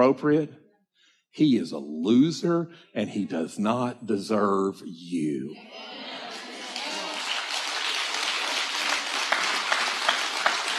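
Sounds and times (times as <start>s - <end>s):
speech: 0.0s - 0.6s, 1.3s - 6.2s
crowd applauding: 6.2s - 10.7s.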